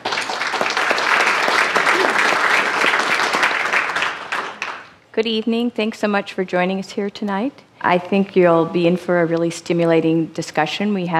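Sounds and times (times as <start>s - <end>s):
audience applause welcoming a panel moderator: 0.0s - 5.0s
speech: 5.2s - 11.1s.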